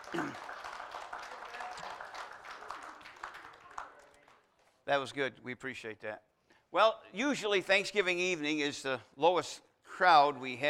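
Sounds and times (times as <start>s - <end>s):
audience applause: 0.0s - 4.4s
speech: 4.9s - 10.6s.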